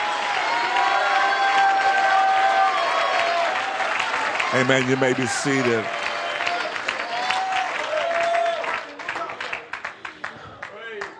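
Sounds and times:
audience clapping: 0.0s - 11.1s
audience shouting praise: 0.2s - 8.8s
speech: 4.5s - 6.0s.

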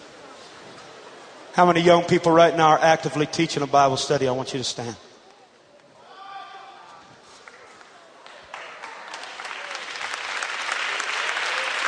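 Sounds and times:
speech: 1.6s - 5.1s
audience clapping: 7.4s - 11.8s.

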